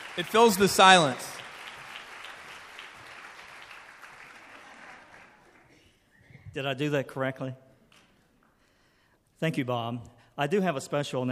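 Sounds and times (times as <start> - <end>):
audience applause: 0.0 - 5.9
speech: 0.2 - 1.3, 6.6 - 7.6, 9.4 - 11.2.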